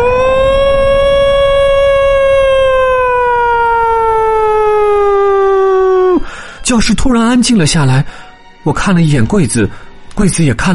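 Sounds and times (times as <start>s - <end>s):
faint low rumble: 0.0s - 6.2s
mine alarm siren wailing: 0.0s - 6.2s
speech: 6.7s - 10.7s.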